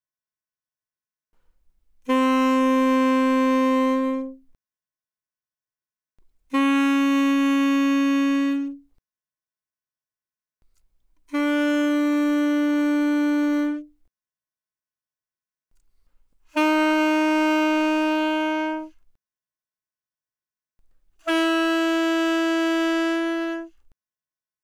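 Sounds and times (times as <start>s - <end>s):
alto saxophone notes without vibrato, fortissimo, C4 to B4: 2.0s - 4.4s, 6.5s - 8.9s, 11.3s - 13.9s, 16.5s - 19.0s, 21.2s - 23.8s.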